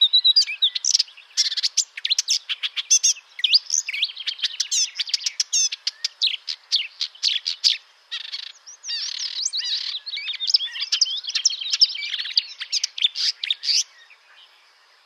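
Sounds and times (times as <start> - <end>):
marsh warbler song: 0.0 - 15.0.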